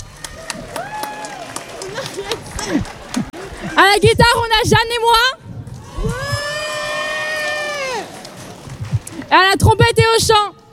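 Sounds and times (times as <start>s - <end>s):
audience clapping in rhythm: 0.0s - 3.7s, 7.4s - 9.3s
speech: 2.6s - 2.9s, 3.8s - 5.4s, 9.3s - 10.6s.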